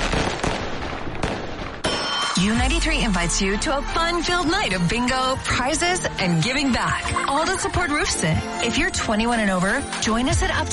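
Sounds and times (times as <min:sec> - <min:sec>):
fireworks crackling for a Fourth of July celebration: 0:00.0 - 0:03.1
speech: 0:02.4 - 0:10.7.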